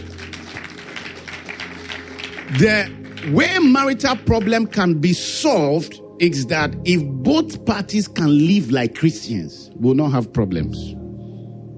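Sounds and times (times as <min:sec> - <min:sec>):
audience clapping hands: 0:00.0 - 0:05.2
speech: 0:02.5 - 0:11.0.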